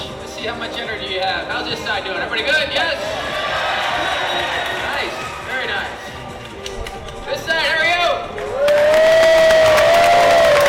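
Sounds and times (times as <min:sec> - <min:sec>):
speech: 0:00.4 - 0:03.4
studio audience cheering at a Millionaire game show taping: 0:03.1 - 0:05.5, 0:08.4 - 0:10.6.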